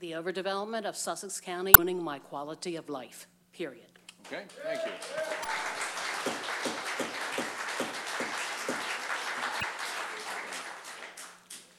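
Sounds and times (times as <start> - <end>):
speech: 0.0 - 6.4
audience applause at public hearing: 4.6 - 11.7.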